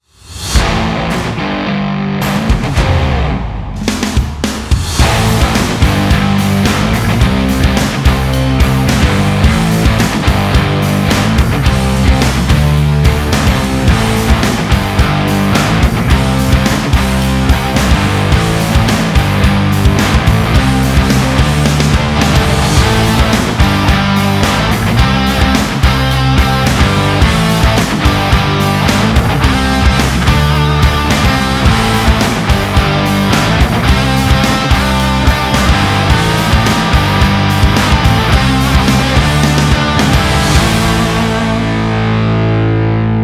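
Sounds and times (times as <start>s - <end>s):
hard rock music: 0.2s - 43.2s.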